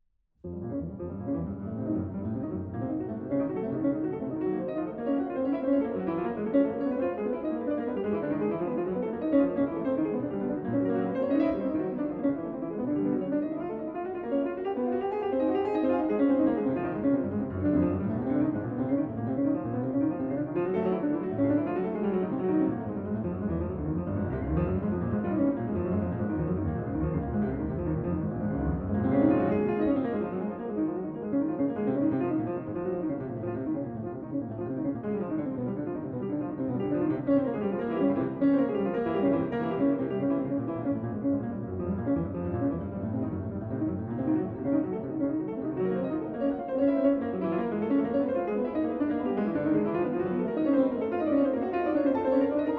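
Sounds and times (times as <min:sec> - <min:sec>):
piano sonata finale presto: 0:00.4 - 0:52.7.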